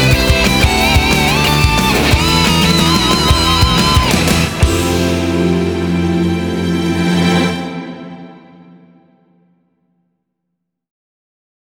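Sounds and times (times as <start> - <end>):
instrumental music: 0.0 - 9.3.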